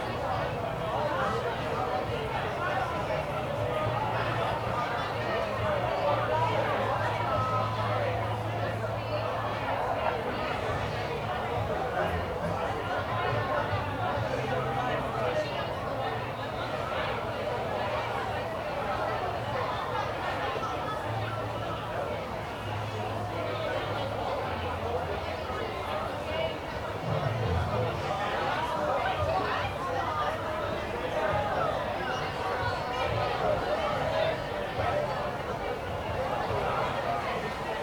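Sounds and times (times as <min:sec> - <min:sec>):
crowd: 0:00.0 - 0:37.8.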